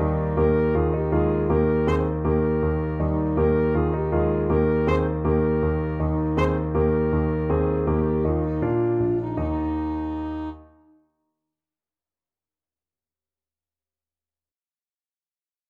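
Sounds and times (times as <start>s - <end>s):
alto saxophone duet: 0.0s - 10.9s.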